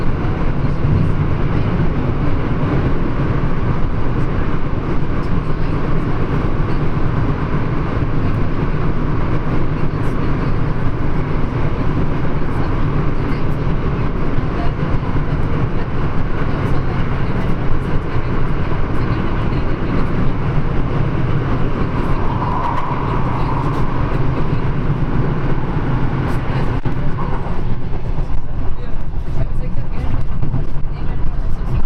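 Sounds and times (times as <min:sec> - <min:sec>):
London Tube train to Stansted: 0:00.0 - 0:31.8.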